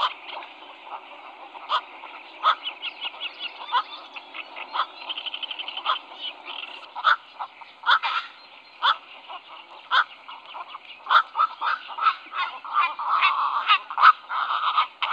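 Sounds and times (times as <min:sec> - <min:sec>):
black-crowned night heron squawks: 0:00.0 - 0:15.1.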